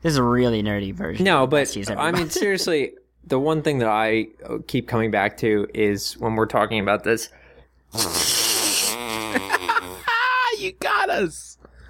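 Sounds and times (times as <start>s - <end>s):
speech: 0.0s - 8.4s, 10.6s - 11.5s
fart: 7.9s - 10.1s.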